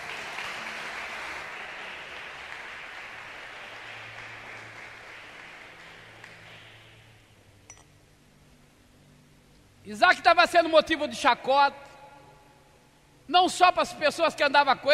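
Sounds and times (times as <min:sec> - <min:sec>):
crowd applauding: 0:00.0 - 0:07.2
speech: 0:09.9 - 0:11.8, 0:13.3 - 0:14.9.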